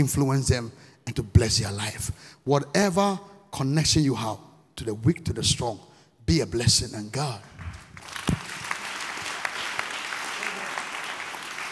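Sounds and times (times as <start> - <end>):
speech: 0.0 - 8.3
audience clapping hands: 7.6 - 11.6.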